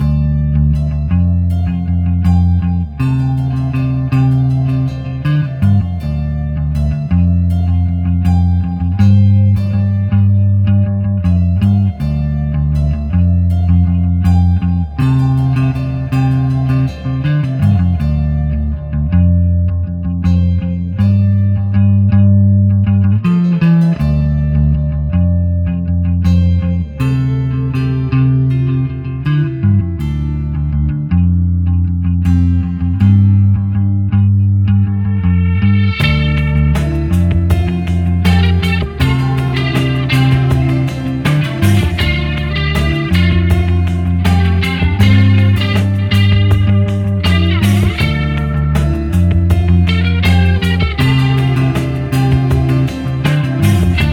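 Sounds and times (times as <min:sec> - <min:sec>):
garage music: 0:00.0 - 0:54.1.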